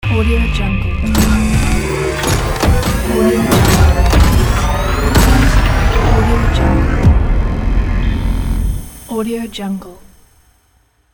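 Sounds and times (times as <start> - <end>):
transforming logo sound: 1.0 - 10.6.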